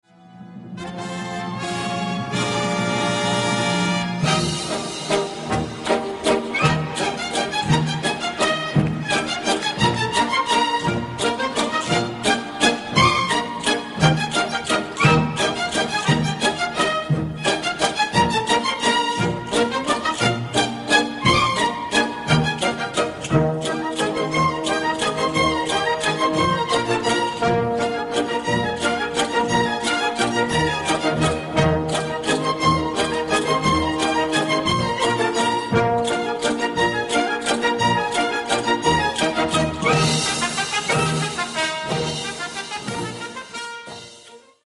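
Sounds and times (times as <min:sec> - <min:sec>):
Aragonese jota folk music: 0:00.0 - 0:44.6.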